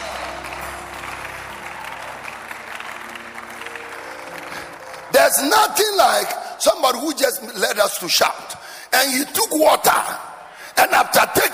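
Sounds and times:
audience clapping as an offering to Jesus: 0.0 - 6.4
speech: 5.3 - 10.2, 10.8 - 11.5.

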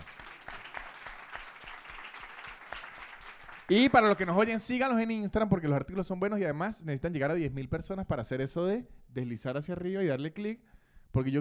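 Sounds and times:
live audience applause: 0.0 - 4.5
speech: 3.7 - 11.3.

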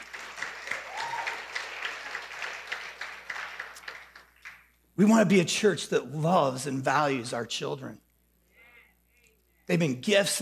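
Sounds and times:
audience applause: 0.0 - 4.6
speech: 5.0 - 8.0, 9.7 - 10.3.

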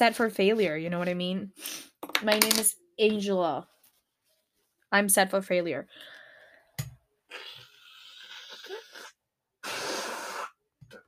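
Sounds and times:
speech: 0.0 - 3.7, 4.9 - 6.2
nose blowing: 7.3 - 10.6.

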